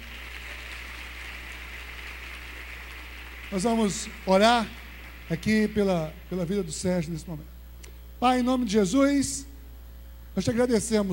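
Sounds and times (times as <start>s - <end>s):
crowd clapping: 0.0s - 6.0s
speech: 3.5s - 7.5s, 8.2s - 9.5s, 10.4s - 11.1s.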